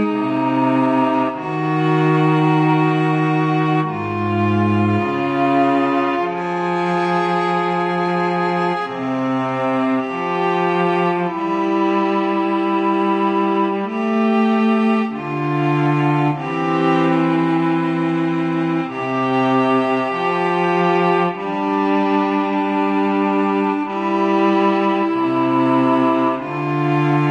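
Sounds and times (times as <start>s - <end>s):
strings: 0.0s - 27.3s.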